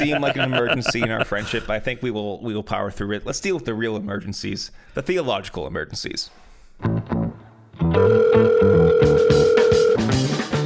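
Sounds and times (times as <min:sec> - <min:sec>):
laughter: 0:00.0 - 0:01.7
speech: 0:00.0 - 0:07.2, 0:07.9 - 0:09.5
busy loud music: 0:07.8 - 0:10.6
telephone ringing: 0:08.0 - 0:10.1.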